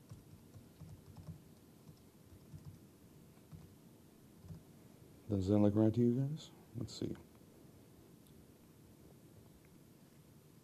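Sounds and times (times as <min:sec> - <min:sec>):
faint typing on a computer keyboard: 0:00.0 - 0:02.8, 0:03.4 - 0:03.8, 0:04.4 - 0:04.6
speech: 0:05.3 - 0:07.3.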